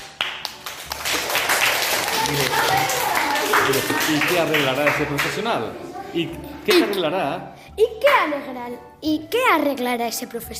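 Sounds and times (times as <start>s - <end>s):
applause: 0.0s - 5.5s
speech: 3.7s - 10.5s.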